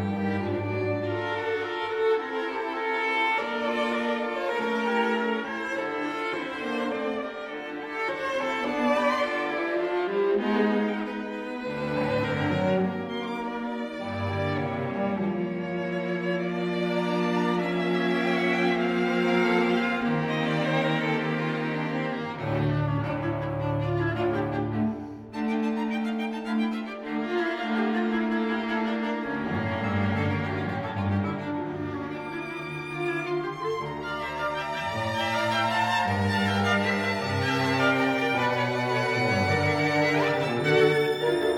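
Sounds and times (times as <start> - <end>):
string quintet of two violins, two violas and cello playing: 0.0 - 41.5.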